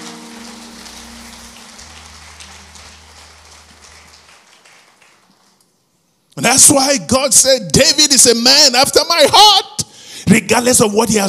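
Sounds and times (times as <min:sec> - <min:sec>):
audience clapping: 0:00.0 - 0:06.2
speech: 0:06.4 - 0:09.7, 0:10.3 - 0:11.2.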